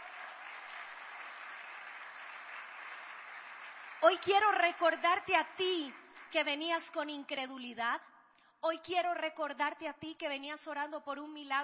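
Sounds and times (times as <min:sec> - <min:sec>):
audience applause: 0:00.0 - 0:06.4
speech: 0:04.0 - 0:11.6.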